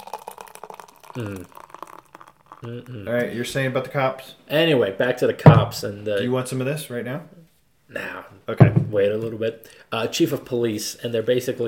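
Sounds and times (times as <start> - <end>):
beer pouring from a crowler: 0.0 - 4.2
speech: 1.2 - 1.6, 2.6 - 11.6.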